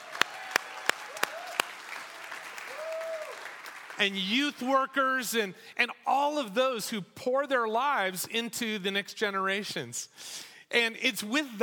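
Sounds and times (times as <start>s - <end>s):
crowd noise with whoop: 0.0s - 3.6s
audience applauding Sunday school teachers: 0.0s - 4.2s
speech: 4.0s - 11.6s.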